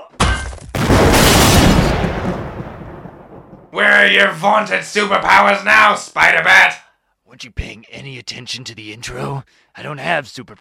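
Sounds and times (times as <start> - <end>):
bomb exploding in a tub of green beans: 0.7 - 3.8
speech: 3.8 - 10.6.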